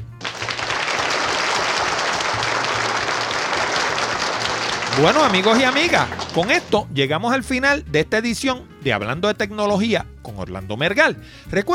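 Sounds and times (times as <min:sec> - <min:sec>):
applause: 0:00.0 - 0:06.9
speech: 0:05.0 - 0:11.7.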